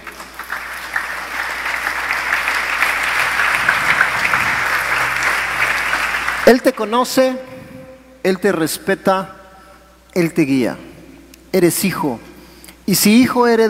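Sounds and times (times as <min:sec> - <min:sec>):
audience applause: 0:00.0 - 0:06.9
speech: 0:06.5 - 0:07.5, 0:08.2 - 0:09.4, 0:10.1 - 0:10.9, 0:11.5 - 0:12.3, 0:12.9 - 0:13.6.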